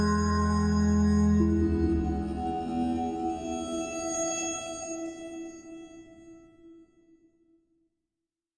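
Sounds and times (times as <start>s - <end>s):
drone: 0.0s - 5.8s.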